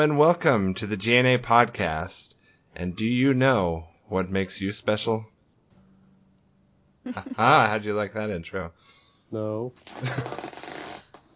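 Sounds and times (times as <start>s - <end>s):
speech: 0.0s - 5.3s, 7.0s - 10.6s
squeaky chair creaking: 9.8s - 11.3s.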